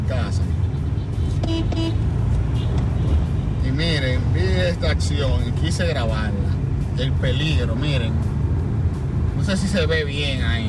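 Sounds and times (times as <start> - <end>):
road traffic rumble while a car is driven home: 0.0 - 10.6
car horn honking: 0.6 - 3.0
speech: 3.8 - 8.3, 9.5 - 10.6.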